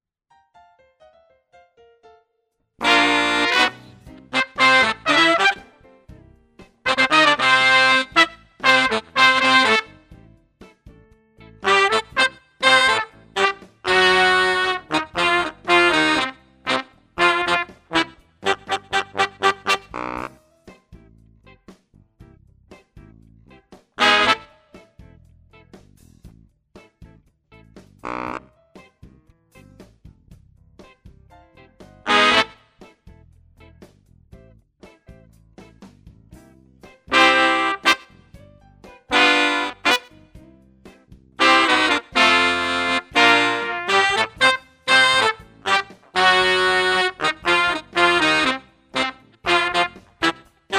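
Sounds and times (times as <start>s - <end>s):
horns: 2.8s - 5.8s, 6.8s - 10.1s, 11.6s - 20.4s, 24.0s - 25.0s, 28.0s - 28.5s, 32.0s - 32.7s, 37.1s - 38.3s, 39.1s - 40.2s, 41.4s - 50.7s.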